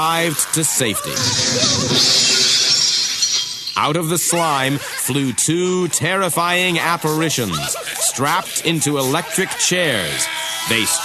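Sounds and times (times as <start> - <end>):
laughter: 0.0 - 2.5, 3.9 - 11.0
speech: 0.0 - 2.6, 3.8 - 11.0
glass jar exploding: 1.2 - 3.8.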